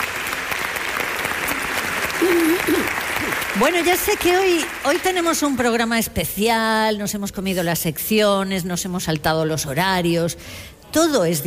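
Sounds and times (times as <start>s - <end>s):
theatre audience clapping: 0.0s - 5.8s
speech: 3.6s - 11.4s.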